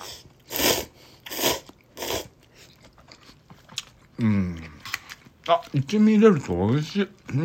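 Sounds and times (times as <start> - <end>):
slurping Nissin Nakiryu dandan instant noodles: 0.0 - 3.3
chewing instant noodles: 1.6 - 6.5
speech: 4.2 - 4.7, 5.5 - 7.4.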